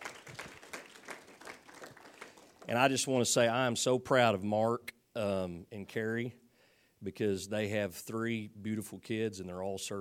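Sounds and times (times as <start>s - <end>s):
audience hand clapping: 0.0s - 3.1s
speech: 2.7s - 6.4s, 7.0s - 9.9s.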